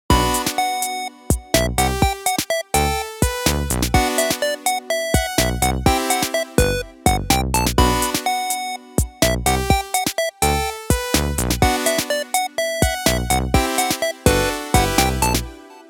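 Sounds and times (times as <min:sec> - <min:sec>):
ringtone: 0:00.1 - 0:15.8.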